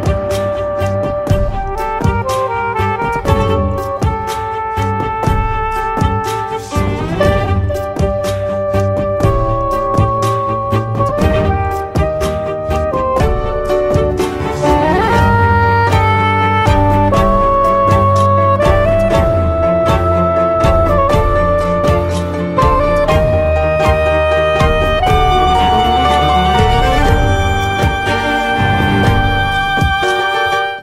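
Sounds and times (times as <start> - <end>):
tango played on saxophone and strings: 0.0 - 30.8.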